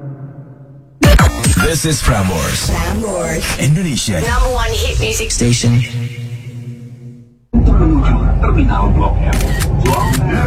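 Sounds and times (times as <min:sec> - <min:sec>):
speech: 0:01.6 - 0:06.2, 0:08.0 - 0:10.4
camera shutter clicking as a photo is taken: 0:09.4 - 0:10.2.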